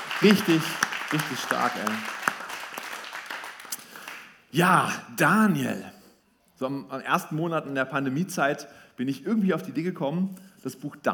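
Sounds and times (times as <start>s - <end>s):
audience applause: 0.0s - 4.3s
speech: 0.2s - 2.2s, 4.5s - 6.0s, 6.6s - 11.1s.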